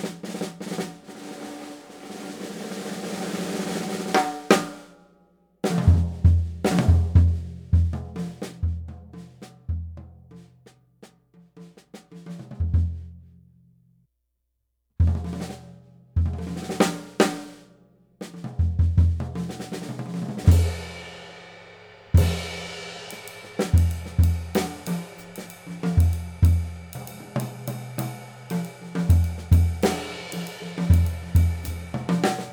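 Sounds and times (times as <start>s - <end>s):
Gretsch Brooklyn drum kit: 0.0s - 4.8s, 5.7s - 8.6s, 16.2s - 17.6s, 18.2s - 32.5s.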